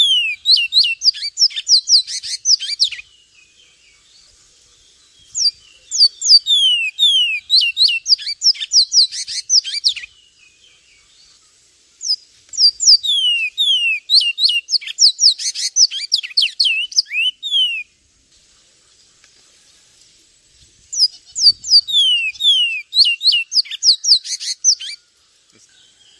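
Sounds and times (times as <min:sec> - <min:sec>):
Javan tesia piercing high chirps and falling whistles: 0:00.0 - 0:03.0, 0:05.4 - 0:10.1, 0:12.0 - 0:17.9, 0:21.0 - 0:25.0.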